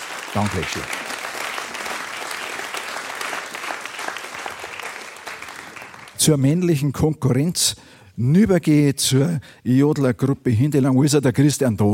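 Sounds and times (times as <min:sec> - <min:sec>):
audience applause: 0:00.0 - 0:06.2
speech: 0:00.4 - 0:01.0, 0:06.2 - 0:11.9.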